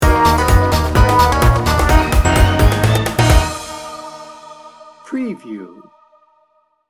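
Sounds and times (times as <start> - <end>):
Christmas carol music sting bumper: 1.0 - 6.4.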